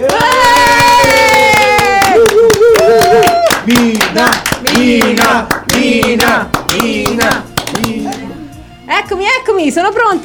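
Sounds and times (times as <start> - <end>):
applause: 0.0 - 8.1
speech: 9.1 - 10.2.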